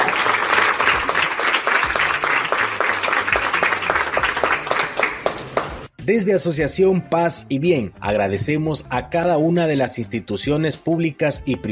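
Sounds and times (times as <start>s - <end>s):
audience applause: 0.0s - 5.9s
speech: 6.1s - 11.7s.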